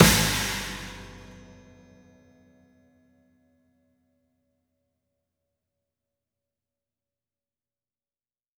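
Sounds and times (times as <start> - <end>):
snare drum: 0.0 - 1.6
crash cymbal: 0.0 - 2.0.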